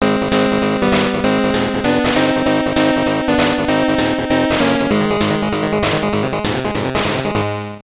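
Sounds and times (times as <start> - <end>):
level completed and you win jingle: 0.0 - 7.7.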